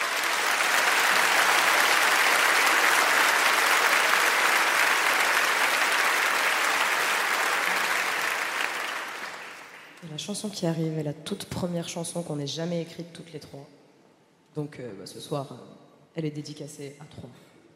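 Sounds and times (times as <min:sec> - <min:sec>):
audience applause for a musician: 0:00.0 - 0:10.0
speech: 0:10.2 - 0:13.8, 0:14.6 - 0:17.5.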